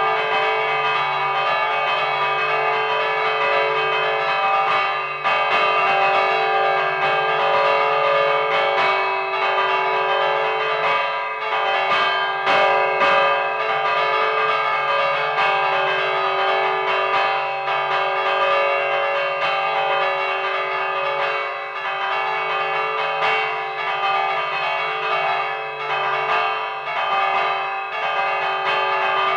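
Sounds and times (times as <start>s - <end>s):
bells pealing: 0.0s - 29.3s.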